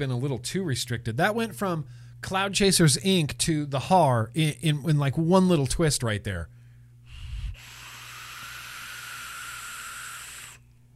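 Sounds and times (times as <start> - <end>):
speech: 0.0 - 6.6
hard drag on a vape with rushing hiss and whistle: 7.2 - 10.6.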